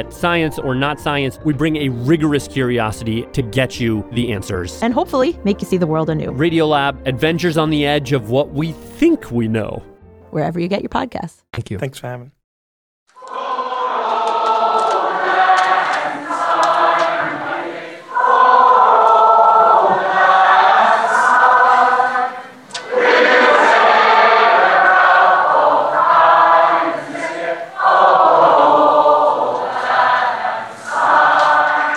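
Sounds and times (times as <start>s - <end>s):
speech: 0.0s - 12.4s
Members of the European Parliament singing in chorus after the Brexit vote: 13.2s - 31.9s.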